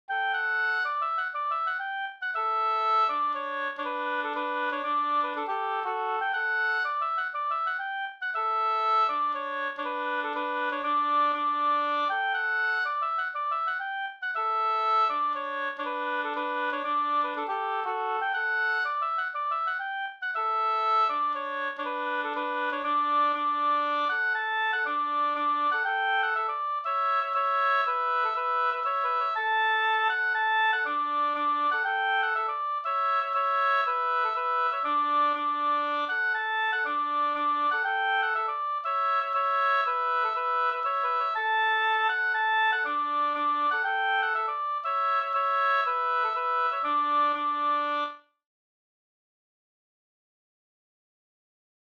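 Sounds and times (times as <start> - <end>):
Rorospols folk dance tune: 0.2 - 48.0.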